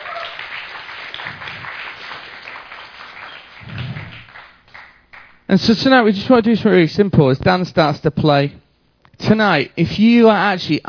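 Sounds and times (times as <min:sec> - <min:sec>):
audience clapping: 0:00.0 - 0:05.5
low thumps: 0:03.6 - 0:04.3
speech: 0:05.5 - 0:08.6, 0:09.2 - 0:10.8.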